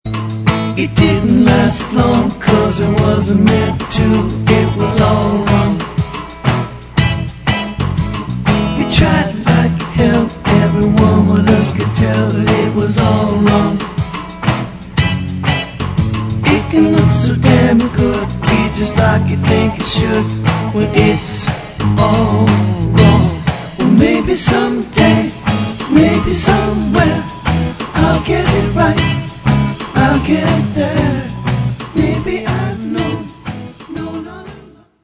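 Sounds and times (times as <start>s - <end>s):
reggae music: 0.1s - 35.0s.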